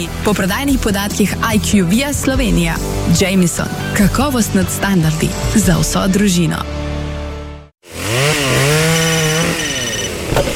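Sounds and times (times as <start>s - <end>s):
speech: 0.0s - 6.8s
chainsaw cutting into wood: 7.8s - 10.5s.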